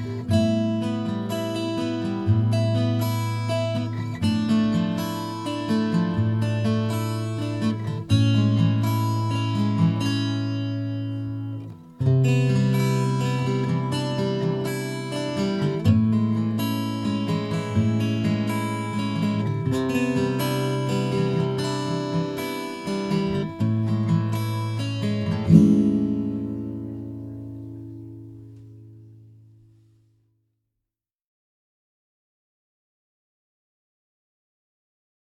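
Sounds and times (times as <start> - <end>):
double-tracked acoustic guitar recorded with microphone: 0.0 - 30.1.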